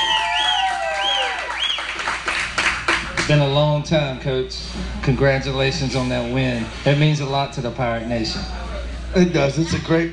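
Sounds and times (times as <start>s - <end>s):
crowd cheering and applauding: 0.0s - 3.3s
speech: 3.3s - 10.1s.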